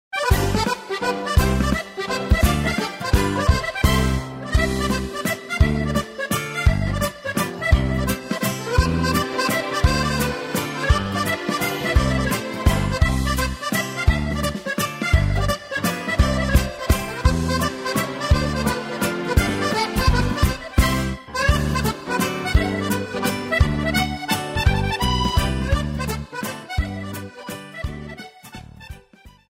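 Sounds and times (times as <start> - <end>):
mazurka: 0.2 - 29.2.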